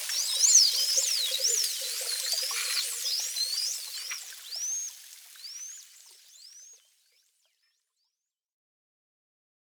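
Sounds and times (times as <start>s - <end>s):
bottlenose dolphins: 0.0s - 6.9s.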